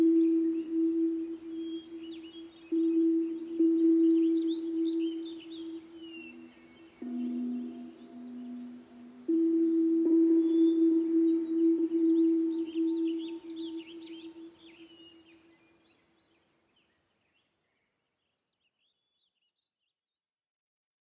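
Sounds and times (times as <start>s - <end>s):
soothing Tibetan tones for yoga: 0.0s - 15.6s.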